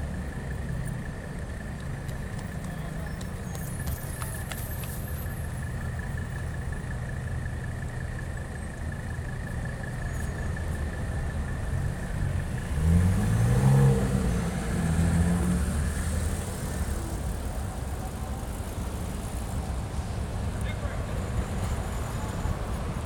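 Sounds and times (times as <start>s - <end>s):
city main street traffic ambience: 0.0s - 23.0s.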